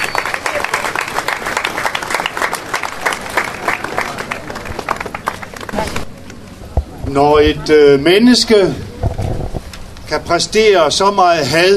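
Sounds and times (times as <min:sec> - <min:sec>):
crowd applauding: 0:00.0 - 0:06.1
speech: 0:07.1 - 0:08.8, 0:10.1 - 0:11.7.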